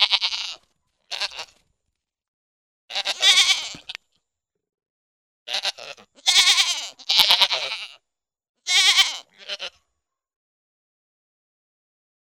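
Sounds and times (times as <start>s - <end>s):
pygmy goat bleating: 0.0s - 1.6s, 2.9s - 4.0s, 5.5s - 8.0s, 8.7s - 9.8s.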